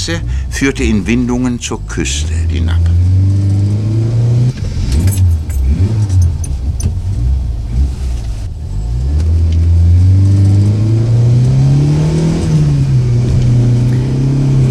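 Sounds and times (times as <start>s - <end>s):
speech: 0.0s - 3.0s
car engine accelerating hard in a chase: 0.0s - 14.6s
metallic jangle: 5.0s - 6.6s.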